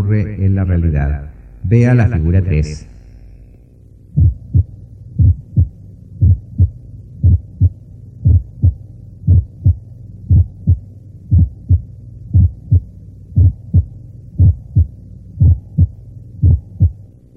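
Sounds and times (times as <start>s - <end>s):
speech: 0.1s - 2.9s
auscultated heart sounds with split first heart sound in complete right bundle branch block: 4.1s - 17.1s.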